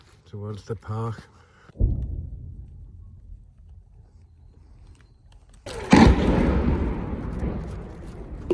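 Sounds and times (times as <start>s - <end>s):
speech: 0.3s - 1.4s
artillery shelling blast in Kherson city centre: 5.7s - 8.4s.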